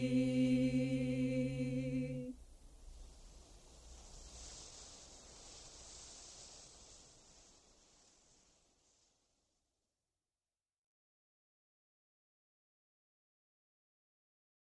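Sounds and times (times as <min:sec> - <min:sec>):
chanting: 0:00.0 - 0:02.4.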